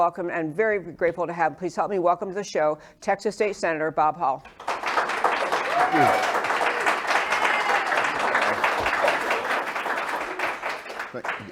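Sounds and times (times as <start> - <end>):
speech: 0.0 - 4.8, 5.8 - 6.4, 11.1 - 11.4
live audience clapping enthusiastically: 4.5 - 11.4.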